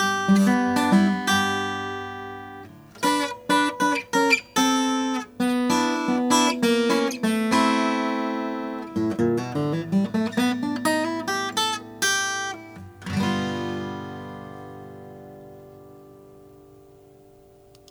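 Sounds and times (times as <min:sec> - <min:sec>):
Martin D-35 acoustic guitar with natural finish: 0:00.0 - 0:17.8.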